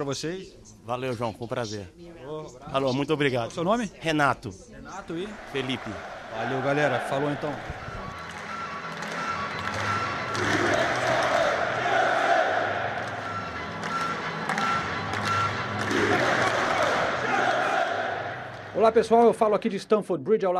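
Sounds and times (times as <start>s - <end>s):
speech: 0.0s - 7.9s, 18.8s - 20.5s
football stadium crowd cheering and chanting: 5.0s - 19.0s.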